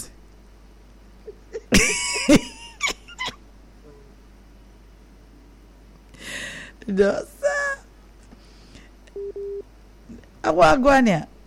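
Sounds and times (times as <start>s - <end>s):
speech: 6.9s - 7.4s, 10.5s - 11.3s
busy signal on a phone line after a dropped call: 9.2s - 9.6s.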